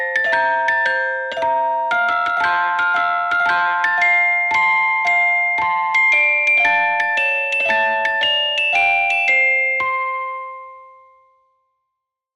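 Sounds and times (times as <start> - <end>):
ice cream truck music: 0.0 - 11.1.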